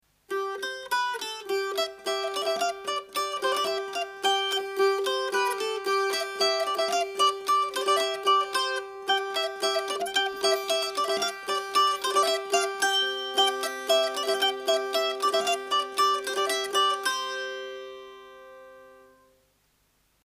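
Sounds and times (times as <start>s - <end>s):
polka music: 1.8s - 17.2s.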